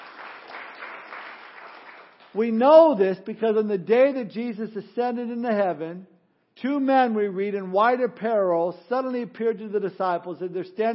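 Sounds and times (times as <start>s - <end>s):
audience applause: 0.0s - 2.3s
speech: 2.3s - 10.9s.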